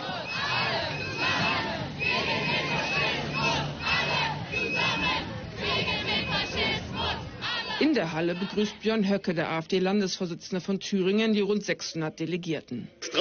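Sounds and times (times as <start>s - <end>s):
protesters chanting a protest anthem beside the AfD party congress hall: 0.0s - 8.9s
speech: 7.9s - 13.1s.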